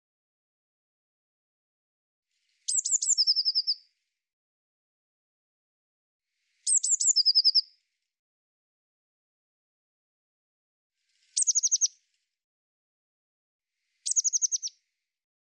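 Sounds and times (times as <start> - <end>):
Eurasian blue tit phrase of piercing high notes and rapid trill: 2.7 - 3.8, 6.7 - 7.6, 11.4 - 11.9, 14.1 - 14.7.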